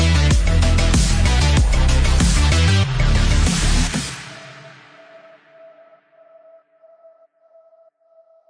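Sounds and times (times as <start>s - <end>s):
game background music: 0.0s - 5.6s.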